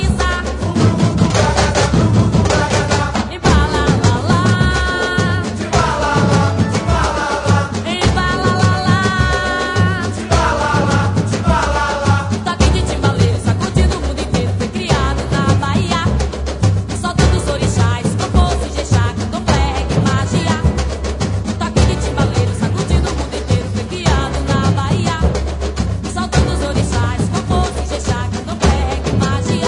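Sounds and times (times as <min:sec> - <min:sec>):
samba timbal drumming: 0:00.0 - 0:29.6.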